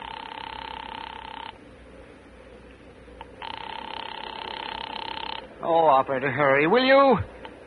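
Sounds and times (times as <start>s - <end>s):
telephone ringing on the line: 0.0s - 1.6s, 3.2s - 5.5s
speech: 5.7s - 7.3s.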